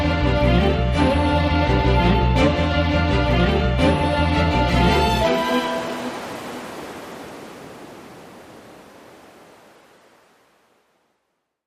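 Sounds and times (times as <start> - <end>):
bass: 0.0 - 5.2
strings: 0.0 - 6.7.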